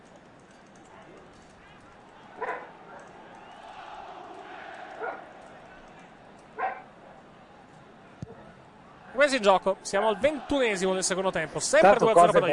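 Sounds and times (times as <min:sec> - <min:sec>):
steady murmur: 0:00.0 - 0:12.5
dogs barking behind a football match: 0:02.3 - 0:03.1, 0:04.8 - 0:05.3, 0:06.6 - 0:06.9
speech: 0:09.2 - 0:12.5.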